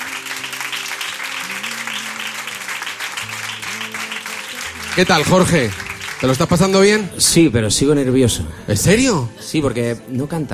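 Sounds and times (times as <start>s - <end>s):
audience applause: 0.0s - 7.2s
speech: 5.0s - 10.5s.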